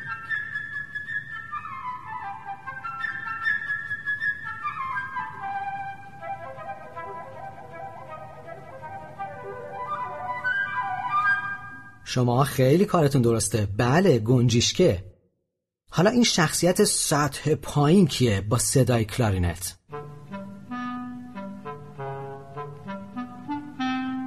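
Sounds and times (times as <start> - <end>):
flute playing: 0.0 - 12.1, 19.9 - 24.2
speech: 12.1 - 15.1, 16.0 - 19.8.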